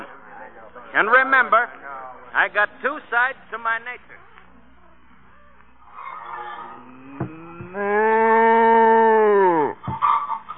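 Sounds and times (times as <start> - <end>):
speech: 1.0 - 4.2, 7.8 - 8.5
cow mooing in a barn: 6.1 - 9.8.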